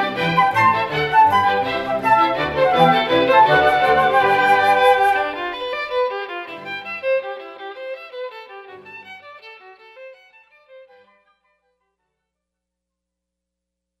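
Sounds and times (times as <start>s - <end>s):
flute: 0.0s - 7.0s.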